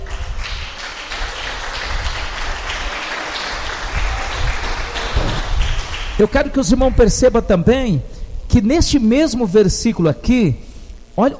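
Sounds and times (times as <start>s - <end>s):
audience applauding: 0.0s - 8.0s
speech: 6.2s - 11.3s.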